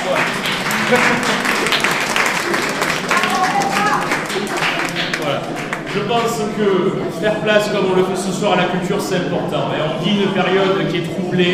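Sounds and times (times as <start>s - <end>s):
audience applause: 0.0s - 6.9s
laughter: 0.0s - 8.8s
speech: 0.1s - 2.7s, 5.4s - 11.5s.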